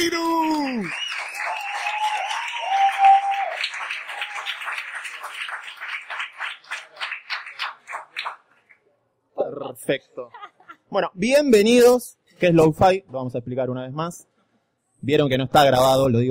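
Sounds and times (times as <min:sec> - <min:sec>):
applause: 0:00.0 - 0:08.9
speech: 0:09.9 - 0:14.3, 0:15.0 - 0:16.2.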